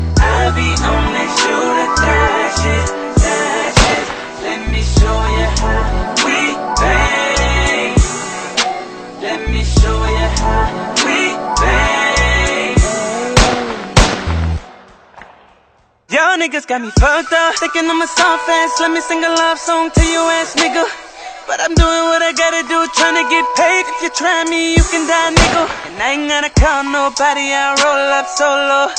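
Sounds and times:
rap music: 0.0s - 15.0s, 16.1s - 28.9s.

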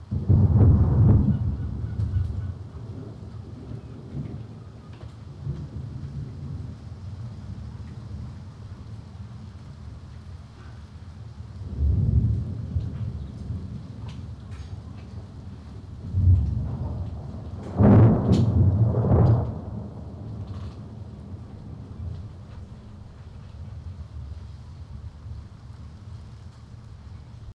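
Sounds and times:
rainstorm: 0.0s - 27.5s.

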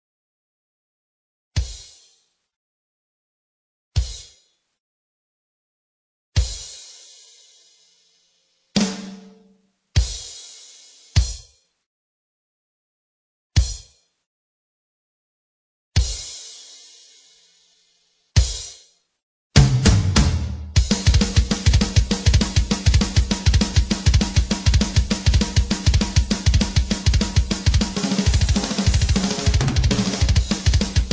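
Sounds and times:
drum track: 1.6s - 2.1s, 4.0s - 4.4s, 6.4s - 7.4s, 8.8s - 11.5s, 13.6s - 14.0s, 16.0s - 16.8s, 18.4s - 18.8s, 19.6s - 31.1s.

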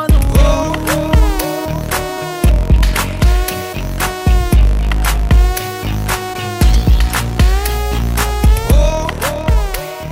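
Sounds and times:
background music ringtone: 0.1s - 10.0s.

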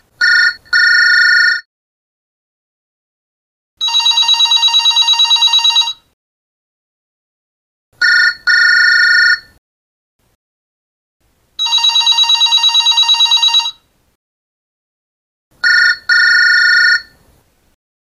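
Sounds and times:
new cell phone sound: 0.2s - 1.7s, 3.8s - 6.1s, 8.0s - 9.6s, 11.6s - 13.9s, 15.6s - 17.2s.

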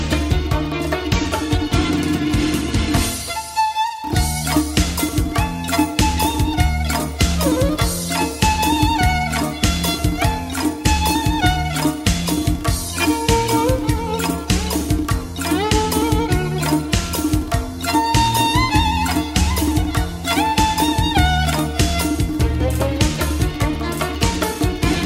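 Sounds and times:
Persian ringtone melody: 0.0s - 25.0s.

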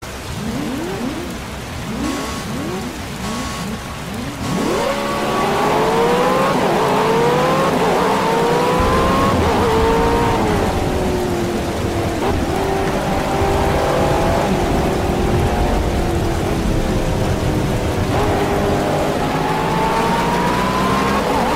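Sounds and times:
car race ringtone: 0.0s - 21.5s.

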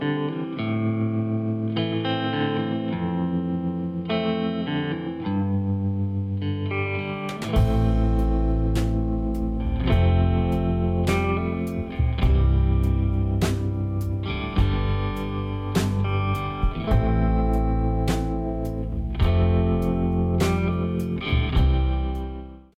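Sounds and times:
sad country guitar: 0.0s - 22.7s.

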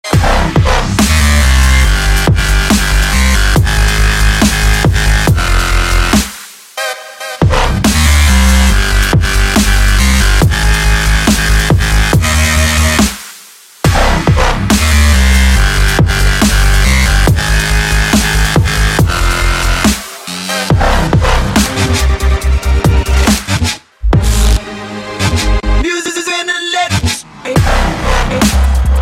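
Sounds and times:
dubstep music: 0.0s - 29.0s.

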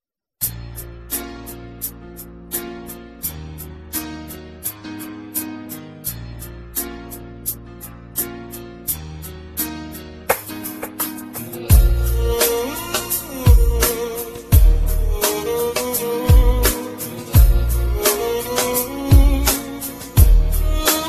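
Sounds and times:
sad romantic music: 0.5s - 21.0s.

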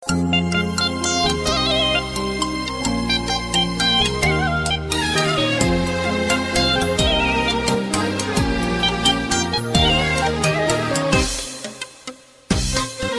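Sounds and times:
Arabic ringtone melody: 0.0s - 12.0s.

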